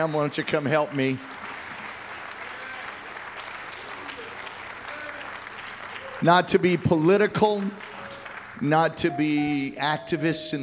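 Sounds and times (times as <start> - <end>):
speech: 0.0 - 1.4, 6.2 - 8.0, 8.6 - 10.6
audience clapping hands: 0.0 - 9.6.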